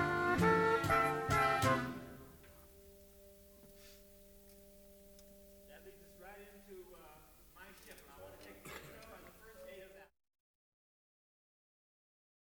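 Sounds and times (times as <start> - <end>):
piano playing: 0.0 - 8.2.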